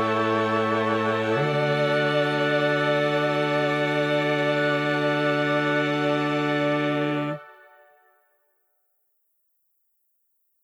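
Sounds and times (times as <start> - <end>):
bass: 0.0 - 7.4.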